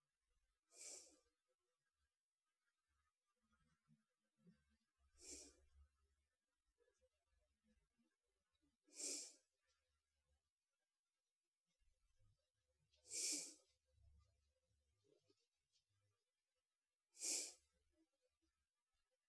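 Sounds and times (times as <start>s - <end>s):
sleeping breath: 0.7s - 1.3s, 5.2s - 5.7s, 8.9s - 9.5s, 13.0s - 13.7s, 17.2s - 17.7s.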